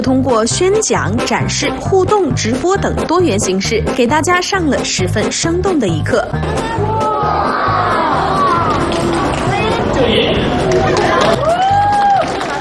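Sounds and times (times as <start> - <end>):
speech: 0.0 - 8.0
audience cheering at dog demonstration: 6.4 - 12.5.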